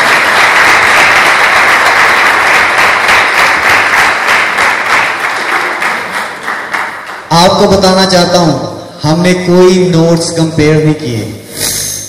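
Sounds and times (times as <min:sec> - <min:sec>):
loud applause: 0:00.0 - 0:07.4
speech: 0:07.4 - 0:11.7.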